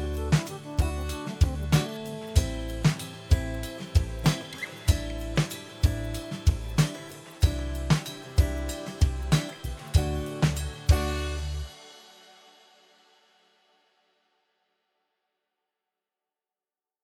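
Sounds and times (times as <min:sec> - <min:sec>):
guitar song: 0:00.0 - 0:11.7.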